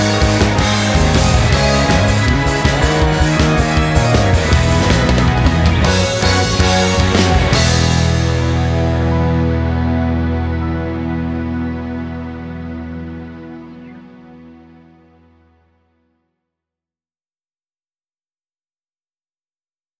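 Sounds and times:
off vocal instrumental music: 0.0 - 15.7.

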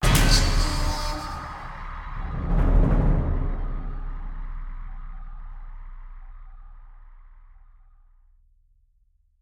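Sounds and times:
jump scare stinger: 0.0 - 7.4.

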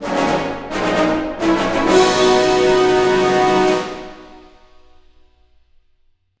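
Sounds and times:
happy jingle with horn: 0.0 - 4.7.

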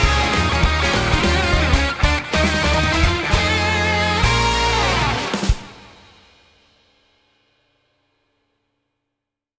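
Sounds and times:
instrumental music: 0.0 - 6.2.

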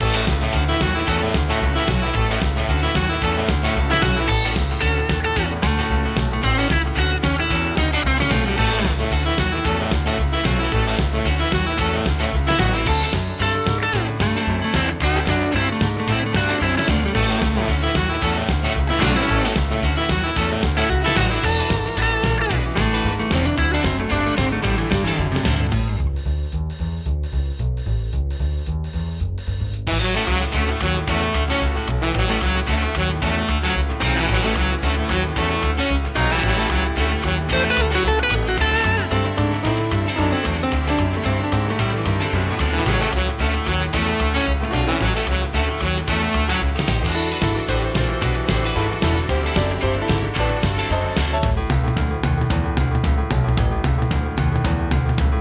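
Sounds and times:
swing music: 0.0 - 55.4.

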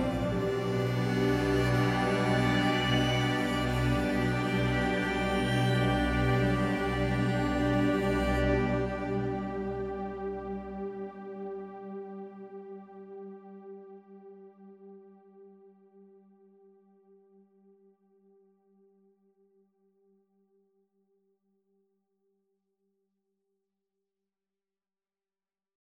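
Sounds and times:
minimal exploration music: 0.0 - 18.7.

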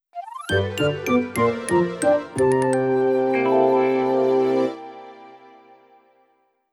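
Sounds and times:
time's up jingle: 0.2 - 3.8.

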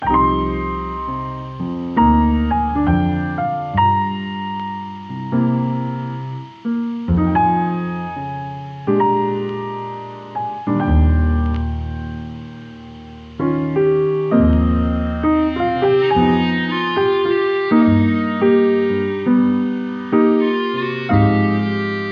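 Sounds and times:
slow jazz: 0.0 - 22.1.

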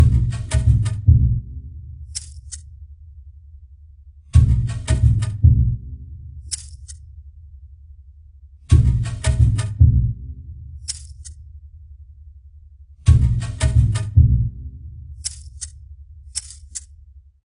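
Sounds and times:
jungle level music: 0.0 - 2.3, 4.3 - 7.0, 8.7 - 11.3, 13.0 - 16.1.

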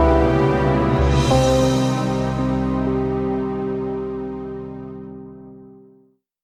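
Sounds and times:
losing sound effect: 0.2 - 4.0.

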